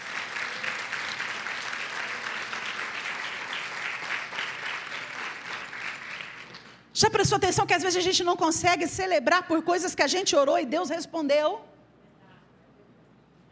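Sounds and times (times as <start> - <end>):
crowd audience applauding: 0.0 - 6.8
speech: 7.0 - 11.7.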